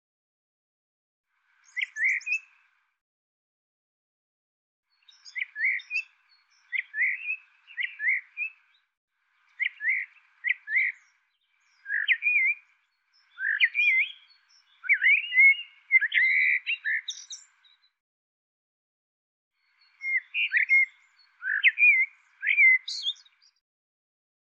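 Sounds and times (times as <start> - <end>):
bird singing: 1.5 - 2.8, 4.9 - 18.0, 19.6 - 23.6.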